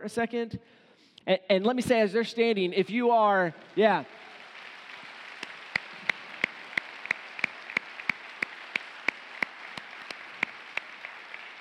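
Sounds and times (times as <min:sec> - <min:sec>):
speech: 0:00.0 - 0:04.3
audience clapping in unison: 0:03.3 - 0:11.5
scattered applause: 0:03.4 - 0:11.5.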